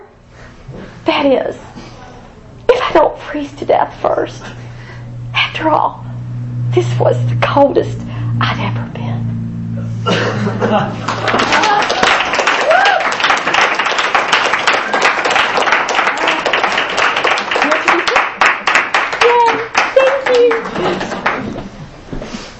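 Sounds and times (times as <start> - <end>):
speech: 1.2 - 1.7, 3.0 - 4.7, 5.6 - 6.2, 6.8 - 9.3, 10.1 - 11.7
laughter: 10.0 - 12.9
crowd applauding after a reading: 10.9 - 21.6
scattered voices and cheers: 11.5 - 13.3.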